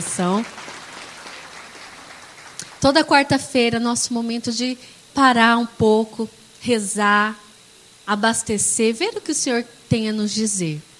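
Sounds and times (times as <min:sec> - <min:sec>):
speech: 0:00.0 - 0:00.6, 0:02.8 - 0:07.4, 0:08.1 - 0:10.9
applause: 0:00.0 - 0:03.1.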